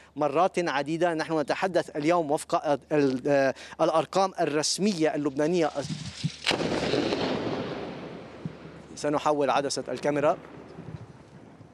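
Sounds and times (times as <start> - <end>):
speech: 0.2 - 6.2, 9.0 - 10.6
military strike on a car: 6.4 - 9.0.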